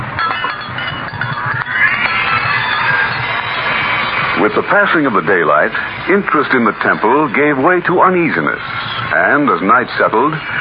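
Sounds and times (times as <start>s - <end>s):
dinner gong ringing: 0.2s - 7.3s
speech: 4.4s - 10.5s.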